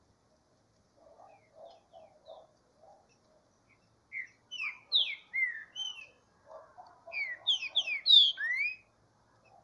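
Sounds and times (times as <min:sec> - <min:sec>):
green-winged saltator song: 0:03.7 - 0:06.2, 0:07.1 - 0:08.9.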